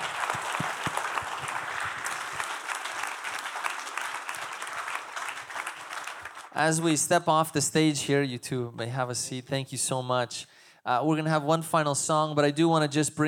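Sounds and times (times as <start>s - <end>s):
audience applause: 0.0s - 6.6s
speech: 6.6s - 13.2s.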